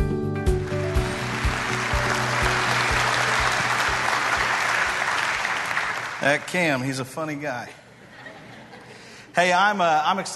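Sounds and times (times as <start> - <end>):
church congregation applauding to welcome a preacher: 0.5 - 7.3
speech: 6.2 - 7.8, 9.4 - 10.3
laughter: 7.7 - 9.3.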